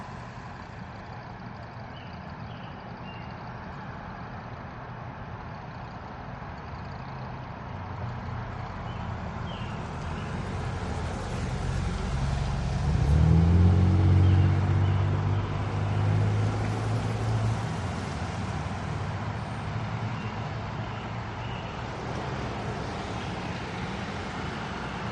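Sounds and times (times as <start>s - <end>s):
trucks passing an intersection in Aspen Colorado: 0.0s - 2.2s, 5.4s - 25.1s
buses passing an intersection in Aspen Colorado: 0.0s - 25.1s
cars passing an intersection in Aspen Colorado: 7.2s - 25.1s.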